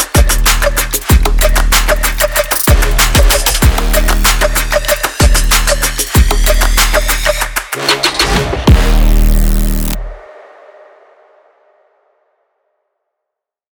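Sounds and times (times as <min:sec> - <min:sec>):
trap beat: 0:00.0 - 0:10.2.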